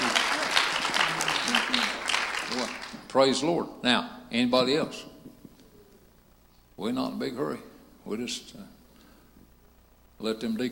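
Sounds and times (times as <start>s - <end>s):
audience applause: 0.0s - 3.1s
speech: 3.1s - 5.1s, 6.8s - 8.8s, 10.2s - 10.6s.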